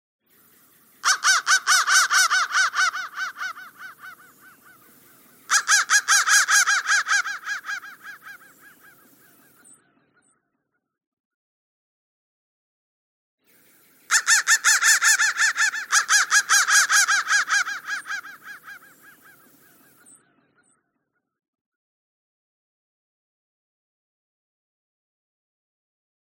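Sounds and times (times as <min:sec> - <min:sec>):
crow cawing: 0:01.0 - 0:09.6, 0:14.1 - 0:19.5.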